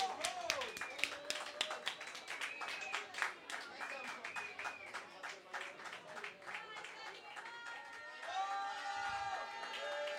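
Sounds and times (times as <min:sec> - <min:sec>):
audience cheering: 0:00.0 - 0:02.6, 0:07.5 - 0:10.1
audience applause: 0:00.0 - 0:10.1.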